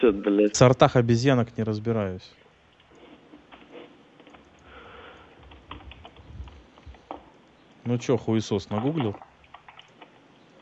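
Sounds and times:
speech: 0.0s - 2.4s, 7.9s - 9.3s
typing on a computer keyboard: 4.2s - 7.3s, 8.7s - 10.2s.

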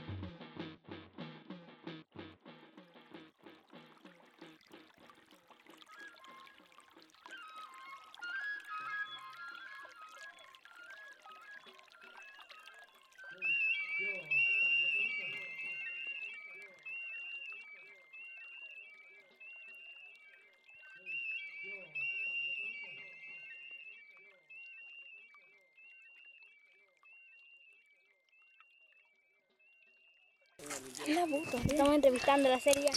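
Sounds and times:
water flowing: 2.5s - 24.7s, 30.6s - 32.9s
speech: 30.6s - 32.9s.

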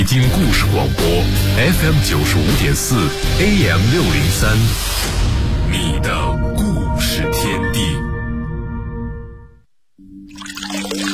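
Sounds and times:
speech: 0.0s - 8.0s
water gushing from a tap: 10.3s - 11.1s.

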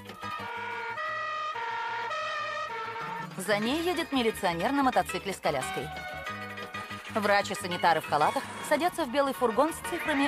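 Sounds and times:
two-tone police siren of a yellow Volga police car: 0.0s - 7.0s
speech: 3.4s - 6.0s, 7.1s - 10.2s.

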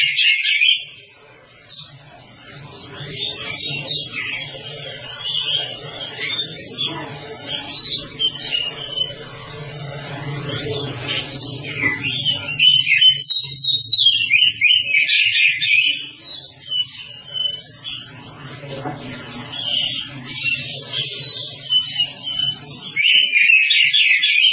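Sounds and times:
Oriental magpie-robin song: 0.0s - 18.4s, 19.3s - 24.5s.

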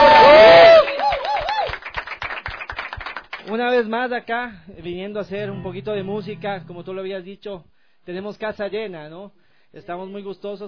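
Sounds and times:
audience clapping: 0.1s - 3.6s
speech: 3.8s - 10.6s.

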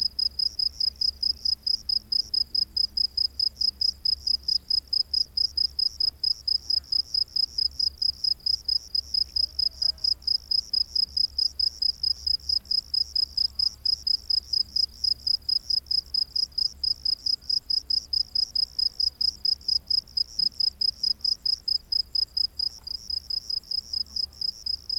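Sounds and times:
cricket chirping: 0.0s - 24.9s.

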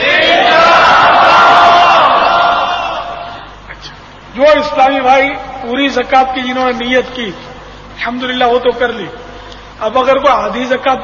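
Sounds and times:
crowd at an Islamic gathering shouting the slogan Inshallah in unison: 0.0s - 3.4s
speech: 4.6s - 9.2s, 9.8s - 11.0s.

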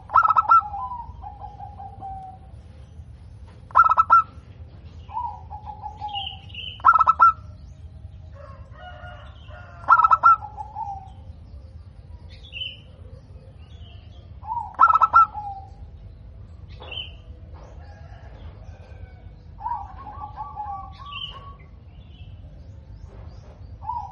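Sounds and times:
zebra dove cooing with stuttering pulsed notes: 0.0s - 2.7s, 3.7s - 4.5s, 5.1s - 7.6s, 8.4s - 11.3s, 14.3s - 15.9s, 19.6s - 21.7s.

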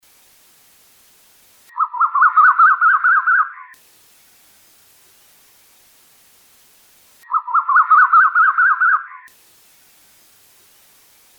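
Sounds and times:
bird chattering song: 1.7s - 3.8s, 7.2s - 9.3s.

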